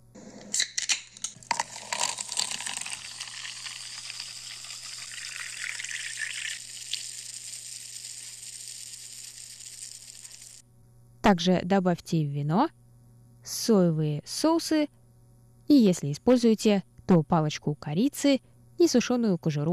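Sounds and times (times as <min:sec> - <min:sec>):
cola fizzing and sizzling in a pan: 0:01.4 - 0:10.6
cola poured from a can into a pan: 0:01.4 - 0:10.6
speech: 0:11.3 - 0:12.8, 0:13.5 - 0:15.0, 0:15.7 - 0:19.7.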